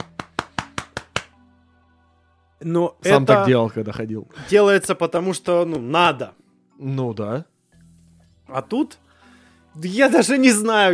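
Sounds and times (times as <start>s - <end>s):
one-handed clapping against a beer: 0.0s - 1.4s
speech: 2.6s - 7.5s, 8.5s - 9.0s, 9.8s - 10.9s.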